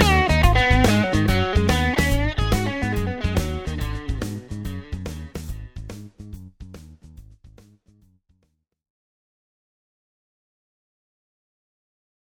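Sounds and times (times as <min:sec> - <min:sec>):
crunchy electric guitar through mid pickups: 0:00.0 - 0:06.4.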